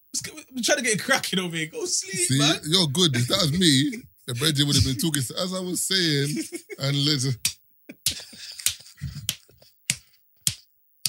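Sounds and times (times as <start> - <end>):
speech: 0.2 - 8.2
low murmuring: 1.8 - 7.4
laughter: 1.8 - 9.7
hand claps: 7.4 - 11.0.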